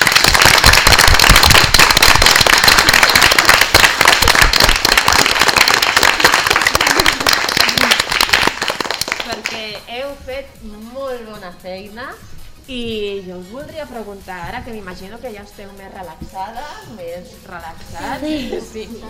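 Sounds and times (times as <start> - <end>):
class applauding: 0.0 - 9.6
speech: 10.4 - 19.0.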